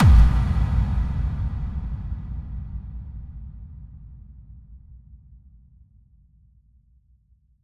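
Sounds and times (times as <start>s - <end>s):
bass drum kick with reverb: 0.0s - 5.2s.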